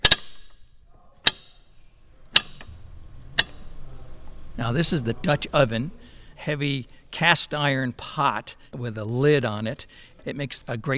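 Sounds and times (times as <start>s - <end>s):
old car jack ticking: 0.0s - 5.8s
speech: 4.6s - 10.9s.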